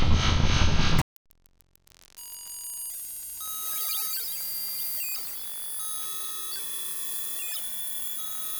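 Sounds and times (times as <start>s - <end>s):
noise: 0.0s - 3.1s.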